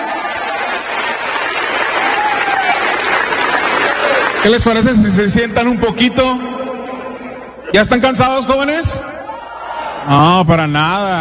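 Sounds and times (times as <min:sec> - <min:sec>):
audience applause: 0:00.0 - 0:05.4
speech: 0:04.4 - 0:06.5, 0:07.7 - 0:09.2, 0:10.0 - 0:11.1.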